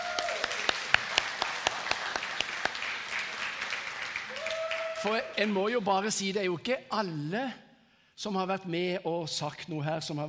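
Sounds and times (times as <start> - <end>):
audience applause: 0.0 - 5.5
speech: 5.0 - 7.6, 8.2 - 10.2.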